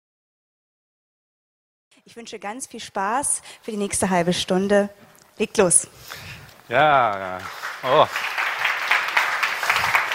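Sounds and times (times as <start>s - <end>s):
speech: 2.0s - 8.4s
audience applause: 6.7s - 10.1s.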